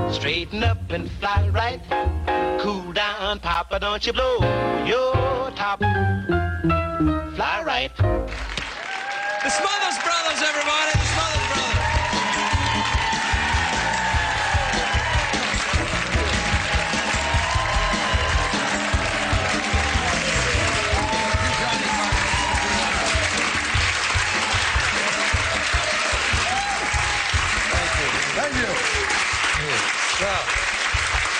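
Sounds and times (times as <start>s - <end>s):
speech: 0.2s - 8.5s, 9.4s - 11.8s, 28.4s - 30.6s
audience applause welcoming a comedy duo: 8.3s - 31.3s.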